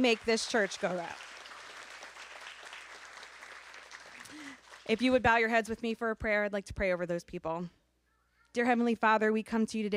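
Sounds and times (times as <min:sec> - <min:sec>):
speech: 0:00.0 - 0:01.3, 0:04.9 - 0:07.8, 0:08.5 - 0:09.9
church audience clapping: 0:00.0 - 0:05.2.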